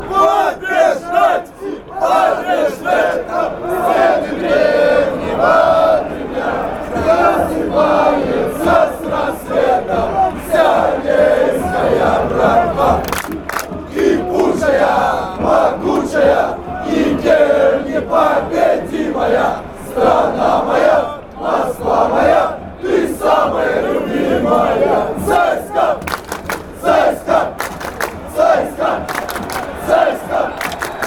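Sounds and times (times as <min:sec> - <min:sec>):
football fans chanting: 0:00.0 - 0:31.0.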